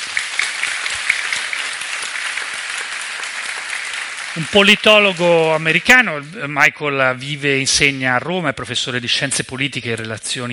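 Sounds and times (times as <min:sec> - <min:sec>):
audience applause: 0:00.0 - 0:06.3
speech: 0:04.4 - 0:10.5.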